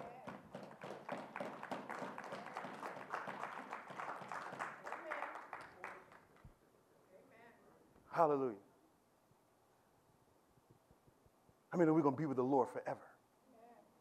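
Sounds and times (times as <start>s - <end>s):
crowd clapping hands: 0.0s - 6.5s
speech: 8.2s - 8.7s, 11.8s - 13.1s.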